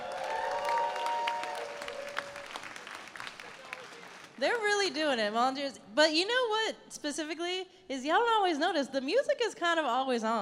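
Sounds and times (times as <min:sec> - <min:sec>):
audience applause: 0:00.0 - 0:04.4
speech: 0:04.4 - 0:10.4.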